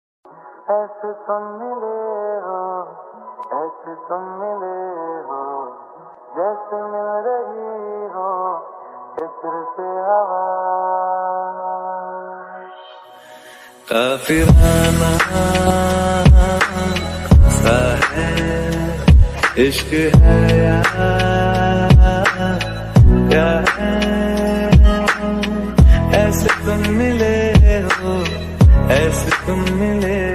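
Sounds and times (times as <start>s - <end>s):
slowed song with reverb: 0.3s - 30.3s.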